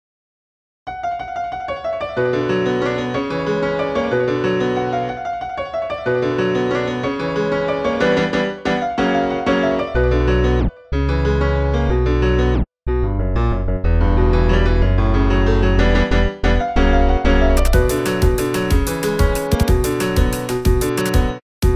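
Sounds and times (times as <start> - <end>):
instrumental music: 0.9 - 21.7.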